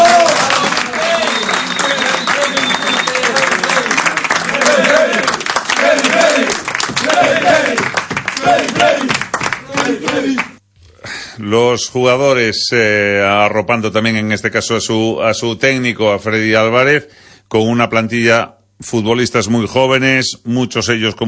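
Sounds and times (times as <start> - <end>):
applause: 0.0 - 10.6
speech: 11.5 - 21.2.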